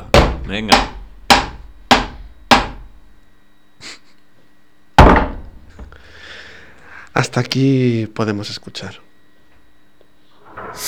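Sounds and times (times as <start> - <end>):
hammer striking a plastic chair: 0.0 - 3.0, 5.0 - 6.0
speech: 0.5 - 0.9, 7.2 - 9.1.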